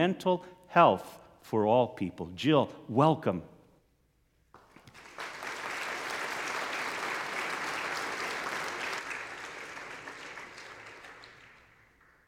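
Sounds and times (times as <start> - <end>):
speech: 0.0 - 3.5
audience clapping: 4.5 - 12.2.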